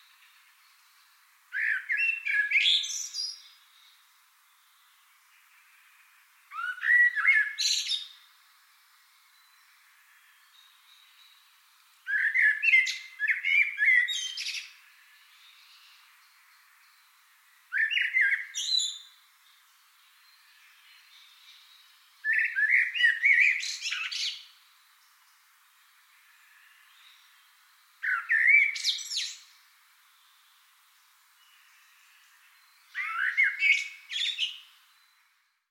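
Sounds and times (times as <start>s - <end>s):
common blackbird singing: 1.5s - 3.9s, 6.5s - 8.2s, 12.1s - 17.1s, 17.7s - 19.2s, 20.2s - 24.6s, 28.0s - 29.5s, 32.5s - 35.2s.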